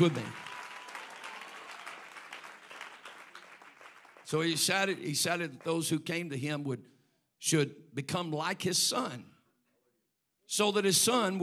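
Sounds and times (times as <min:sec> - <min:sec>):
speech: 0:00.0 - 0:00.4, 0:04.3 - 0:09.3, 0:10.5 - 0:11.4
audience clapping hands: 0:00.0 - 0:05.9.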